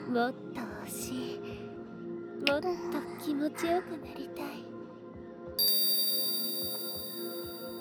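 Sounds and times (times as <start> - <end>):
speech: 0.1 - 1.5, 2.5 - 4.6
hypnosis bell chime ringing: 5.6 - 7.7
soft steady low tones: 5.6 - 7.7.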